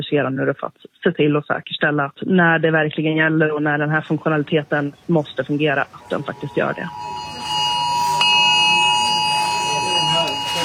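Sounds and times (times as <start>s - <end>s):
speech: 0.0s - 7.2s
murmur of people talking: 3.9s - 10.6s
several mobile phones blaring emergency alert tones: 6.0s - 10.6s.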